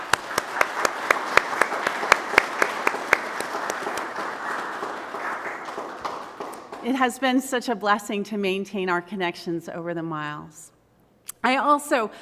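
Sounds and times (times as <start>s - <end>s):
audience applause: 0.0s - 7.0s
speech: 6.8s - 10.7s, 11.4s - 12.2s.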